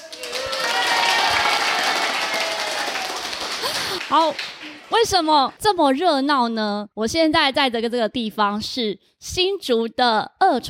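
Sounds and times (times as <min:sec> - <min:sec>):
audience cheering and applause: 0:00.0 - 0:05.2
speech: 0:04.1 - 0:10.6.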